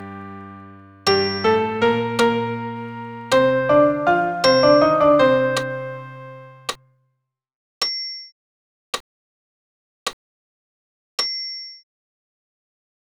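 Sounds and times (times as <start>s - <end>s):
soprano singing a sacred piece: 0.0s - 6.7s
piano accompaniment: 0.0s - 6.8s.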